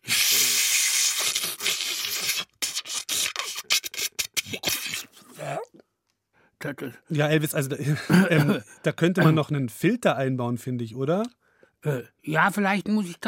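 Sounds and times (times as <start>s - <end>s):
vacuum cleaner sucking up cookie crumbs: 0.0s - 3.5s
speech: 6.6s - 13.2s.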